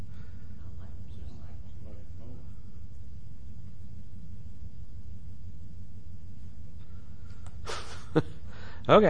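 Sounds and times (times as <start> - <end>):
air conditioner fan rumbling: 0.0 - 9.0.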